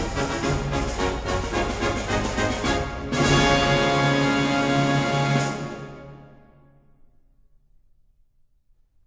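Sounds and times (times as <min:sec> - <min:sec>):
polka music: 0:00.0 - 0:06.3.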